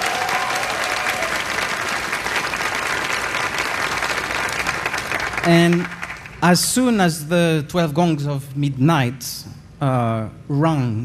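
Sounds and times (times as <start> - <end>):
audience applause for keyboard player: 0.0 - 6.4
speech: 5.4 - 11.0.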